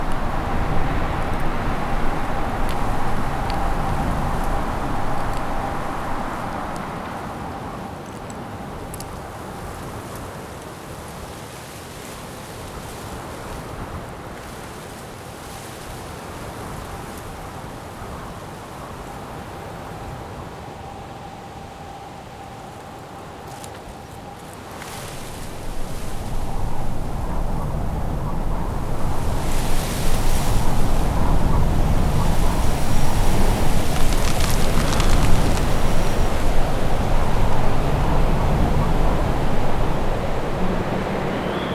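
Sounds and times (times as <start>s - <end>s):
ice forest ambience: 0.0s - 7.1s, 24.8s - 41.7s.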